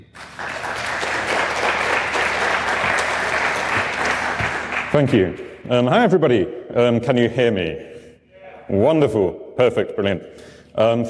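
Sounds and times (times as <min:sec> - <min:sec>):
audience applause: 0:00.0 - 0:05.2
speech: 0:05.0 - 0:07.9, 0:08.7 - 0:11.0.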